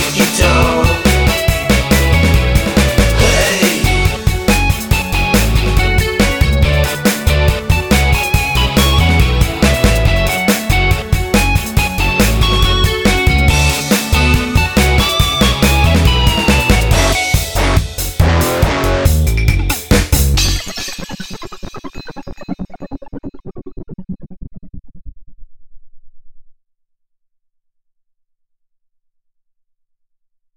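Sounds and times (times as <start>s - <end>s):
fake guitars: 0.0s - 22.6s.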